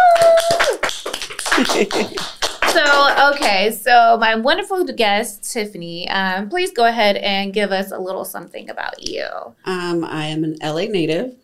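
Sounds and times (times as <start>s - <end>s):
laughter: 0.0s - 3.4s
people clapping: 0.0s - 3.8s
speech: 1.6s - 11.4s.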